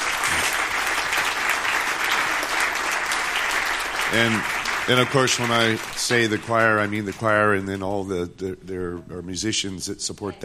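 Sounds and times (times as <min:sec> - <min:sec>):
audience applause for the choir: 0:00.0 - 0:07.6
speech: 0:04.1 - 0:10.4.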